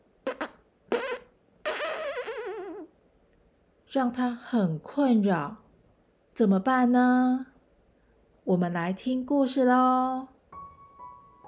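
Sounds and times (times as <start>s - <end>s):
fart: 0.2s - 2.9s
speech: 3.9s - 5.6s, 6.4s - 7.5s, 8.5s - 10.3s.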